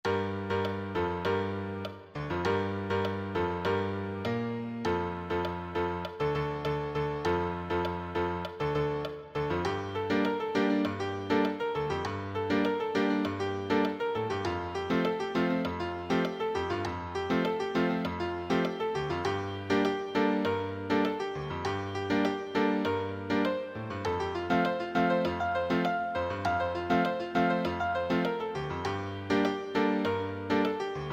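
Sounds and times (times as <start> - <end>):
solo piano: 0.0 - 31.1.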